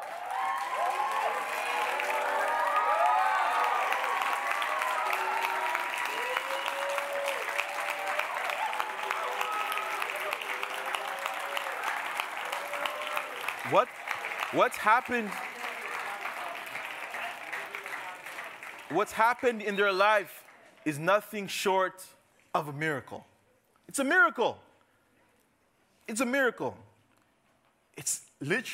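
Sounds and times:
cheering voices: 0.0s - 19.6s
audience applause: 0.0s - 20.6s
speech: 13.7s - 15.5s, 18.9s - 23.3s, 23.9s - 24.7s, 26.1s - 26.9s, 28.0s - 28.7s.

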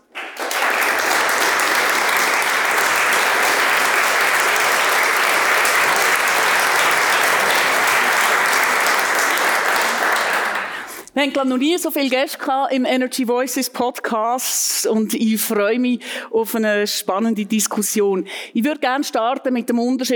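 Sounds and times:
audience applause: 0.0s - 11.1s
speech: 11.2s - 20.1s.

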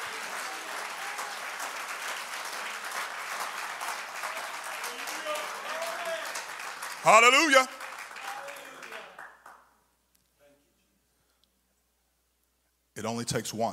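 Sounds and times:
audience clapping: 0.0s - 9.8s
speech: 7.0s - 7.8s, 13.0s - 13.7s.

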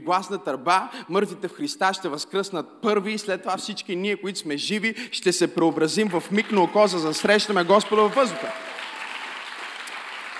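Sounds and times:
speech: 0.0s - 8.8s
audience applauding: 5.7s - 10.3s.

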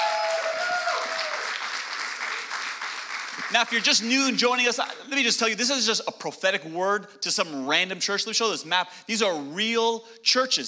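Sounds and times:
audience applause: 0.0s - 5.0s
speech: 3.5s - 10.6s.

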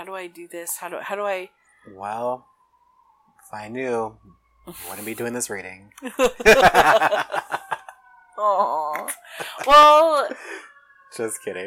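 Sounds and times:
speech: 0.0s - 2.5s, 3.5s - 7.7s, 8.4s - 11.6s
sirens: 0.0s - 11.6s
laughter: 6.0s - 8.0s, 9.0s - 10.5s.

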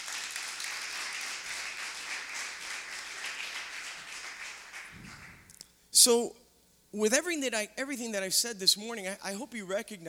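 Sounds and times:
audience applause clap offering: 0.0s - 5.5s
speech: 6.0s - 10.0s.

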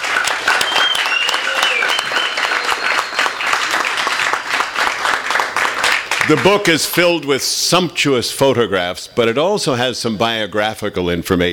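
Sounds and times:
audience applause: 0.0s - 7.2s
speech: 6.3s - 11.5s.

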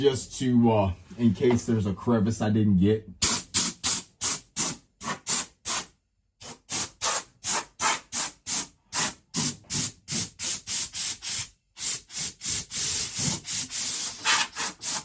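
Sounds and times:
speech: 0.0s - 3.3s
high pressure air blowing: 3.2s - 5.8s, 6.4s - 15.0s.

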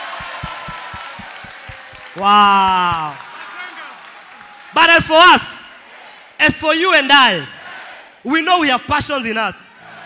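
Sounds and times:
audience clapping: 0.0s - 4.8s
speech: 2.2s - 3.2s, 4.8s - 5.5s, 6.4s - 7.6s, 8.2s - 9.7s.

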